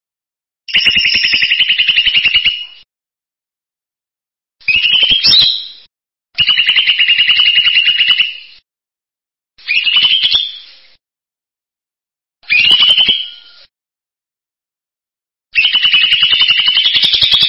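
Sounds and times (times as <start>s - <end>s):
bird song in buzzy trilled phrases: 0.7s - 2.9s, 4.6s - 8.6s, 9.6s - 11.0s, 12.4s - 13.7s, 15.6s - 17.4s.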